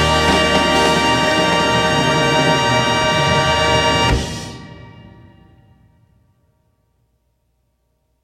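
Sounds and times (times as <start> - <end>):
vocals singing: 0.0 - 4.3
band playing: 0.0 - 5.5.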